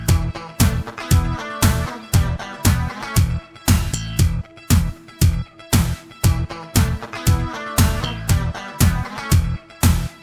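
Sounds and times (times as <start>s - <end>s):
karaoke singing: 0.1s - 3.9s, 5.8s - 10.1s.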